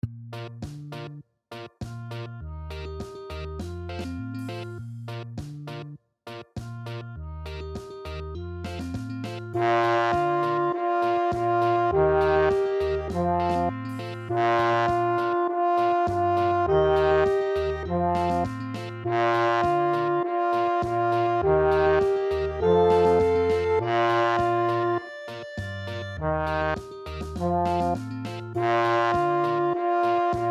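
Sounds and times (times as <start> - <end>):
reggae trombone: 0.4 - 30.5.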